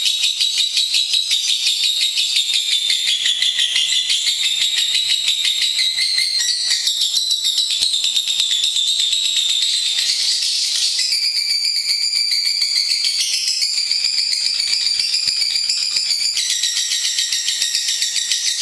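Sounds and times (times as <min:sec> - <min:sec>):
lovebird song: 0:00.0 - 0:18.6.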